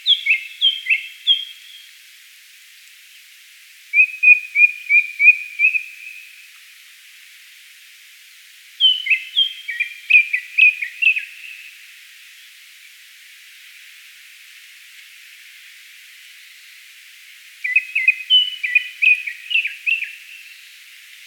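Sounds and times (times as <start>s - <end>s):
Japanese thrush whistling song: 0.0s - 1.9s, 4.0s - 6.2s, 8.8s - 11.7s, 17.6s - 20.7s.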